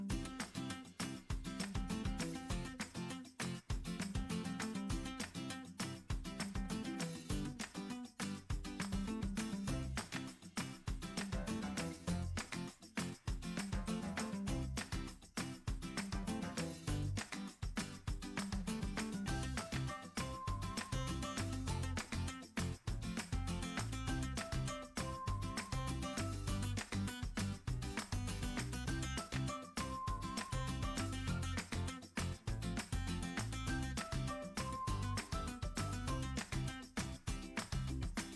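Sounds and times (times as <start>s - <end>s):
cheerful music: 0.1s - 38.3s.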